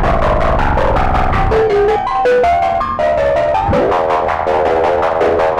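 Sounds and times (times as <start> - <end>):
FM synth tone using a sample as oscillator: 0.2 - 5.5.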